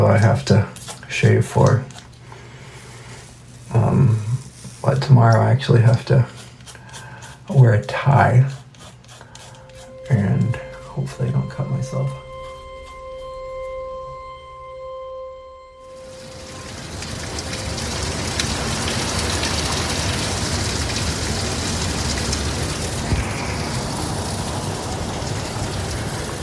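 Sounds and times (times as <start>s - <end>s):
speech: 0.2s - 1.9s, 4.9s - 6.4s, 7.5s - 8.6s, 10.1s - 12.2s
heavy rain pouring outside: 15.8s - 26.4s.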